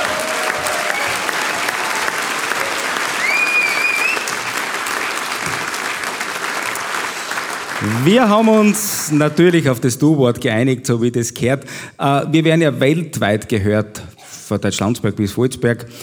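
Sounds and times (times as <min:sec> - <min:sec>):
audience applause: 0:00.0 - 0:09.6
speech: 0:07.8 - 0:16.0.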